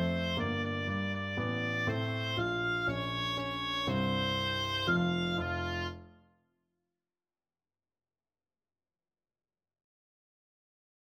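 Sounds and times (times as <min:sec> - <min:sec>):
reed pipes and oboe playing: 0:00.0 - 0:06.2.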